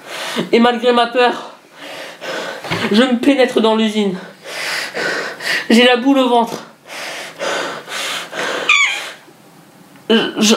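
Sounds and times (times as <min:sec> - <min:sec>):
speech: 0:00.4 - 0:01.5, 0:02.7 - 0:04.3, 0:05.7 - 0:06.6, 0:10.1 - 0:10.5
mouse squeaking inside a dark factory: 0:08.7 - 0:09.2.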